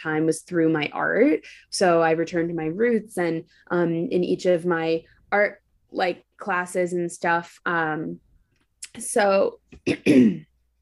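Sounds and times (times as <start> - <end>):
speech: 0.0 - 8.3, 9.0 - 10.5
person clearing throat: 9.8 - 10.5.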